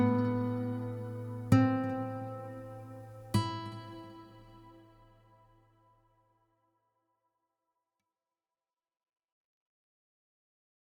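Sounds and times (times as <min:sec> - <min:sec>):
guitar arpeggio: 0:00.0 - 0:04.8.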